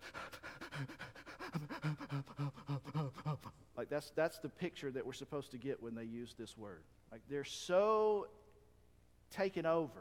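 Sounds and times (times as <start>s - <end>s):
voice imitating an upset small child panting: 0.0s - 3.6s
speech: 0.8s - 8.4s, 9.3s - 9.9s.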